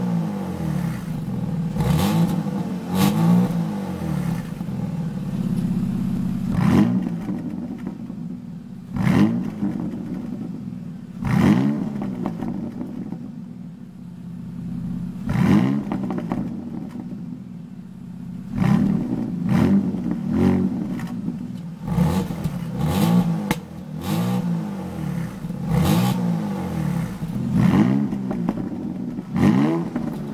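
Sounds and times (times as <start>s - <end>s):
Porsche Cayenne GTS: 0.0s - 30.3s.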